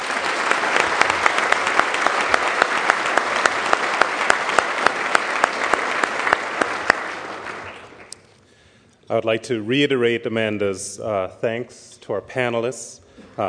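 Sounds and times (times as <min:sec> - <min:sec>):
audience clapping: 0:00.0 - 0:08.3
speech: 0:09.1 - 0:13.4.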